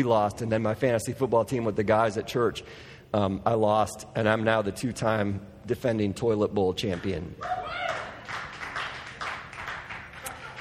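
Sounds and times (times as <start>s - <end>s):
speech: 0.0s - 8.4s
small group of people cheering and clapping: 7.4s - 10.5s.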